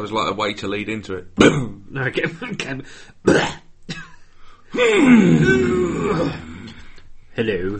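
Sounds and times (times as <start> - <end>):
speech: 0.0 - 3.6, 4.7 - 6.5, 7.4 - 7.7
coughing: 1.4 - 6.8
wheezy strained vocal sound: 4.5 - 7.0.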